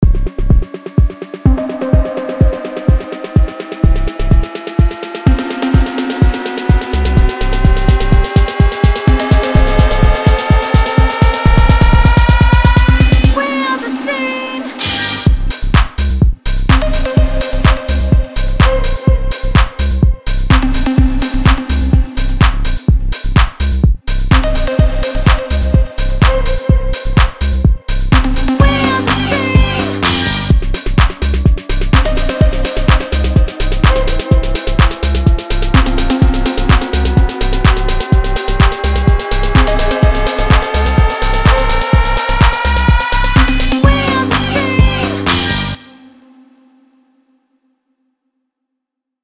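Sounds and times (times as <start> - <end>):
funky tech house music: 0.0 - 46.5.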